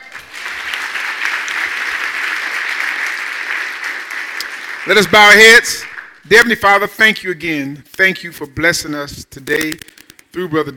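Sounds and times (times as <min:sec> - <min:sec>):
audience hand clapping: 0:00.0 - 0:06.3
speech: 0:04.9 - 0:10.7.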